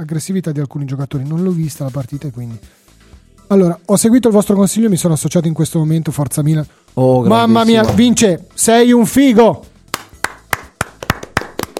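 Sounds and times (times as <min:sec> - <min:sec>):
speech: 0:00.0 - 0:02.9, 0:03.5 - 0:09.7
live-show hosts clapping hands: 0:09.9 - 0:11.7.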